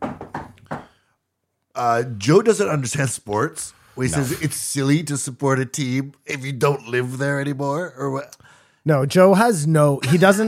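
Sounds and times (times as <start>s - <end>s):
dull knocks on wood: 0.0s - 0.9s
speech: 1.8s - 10.4s.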